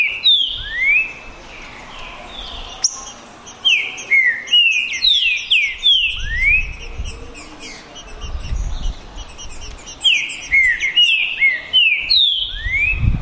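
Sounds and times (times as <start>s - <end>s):
green-winged saltator males singing in a song contest: 0.0s - 13.2s.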